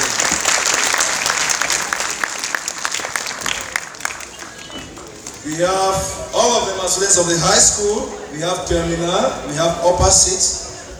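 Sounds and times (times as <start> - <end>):
audience applause: 0.0 - 5.8
speech: 5.5 - 10.6.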